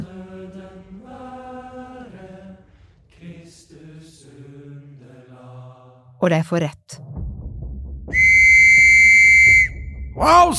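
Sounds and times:
speech: 0:06.2 - 0:07.0, 0:10.2 - 0:10.5
whistle blast: 0:08.1 - 0:10.4.

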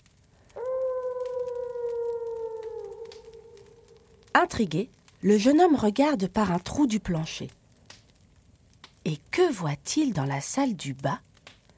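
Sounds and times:
wolf howling: 0:00.5 - 0:04.3
speech: 0:04.4 - 0:07.6, 0:09.1 - 0:11.3.

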